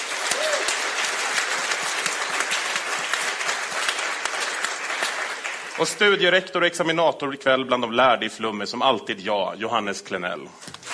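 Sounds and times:
audience applause: 0.0s - 6.3s
speech: 5.8s - 10.7s.

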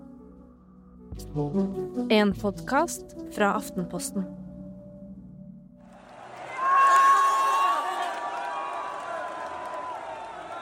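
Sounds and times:
speech: 1.2s - 4.4s
thousands of football fans in red celebrating a goal: 5.9s - 10.5s.

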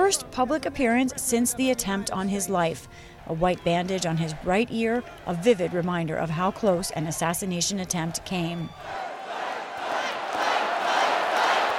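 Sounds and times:
speech: 0.1s - 9.1s
large crowd roaring and chanting in an arena: 3.3s - 7.1s, 8.7s - 11.7s.

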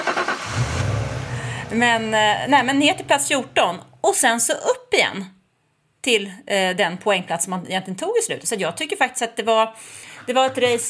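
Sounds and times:
voice imitating a 2010 Citroën C4 starting up: 0.3s - 3.8s
speech: 1.7s - 5.4s, 6.0s - 10.8s.

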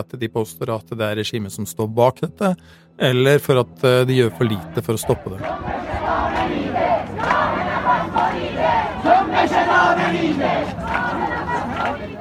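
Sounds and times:
speech: 0.0s - 12.1s
protest crowd chanting slogans: 4.4s - 12.1s.

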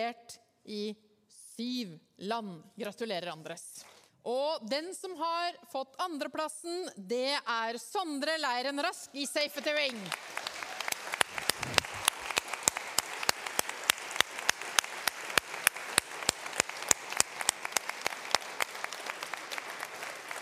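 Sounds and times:
speech: 0.0s - 10.4s
audience applause: 9.6s - 20.3s.

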